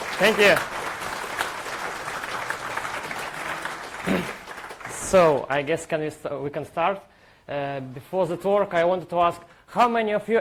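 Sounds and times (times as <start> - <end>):
audience applause: 0.0 - 5.5
speech: 0.2 - 0.8, 5.1 - 10.3.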